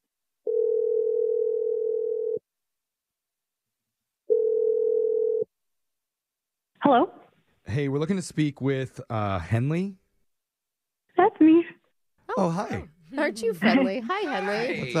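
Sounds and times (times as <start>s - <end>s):
long steady lower telephone ringing tones: 0.5s - 2.4s, 4.3s - 5.5s
speech: 7.8s - 10.0s, 12.4s - 14.9s.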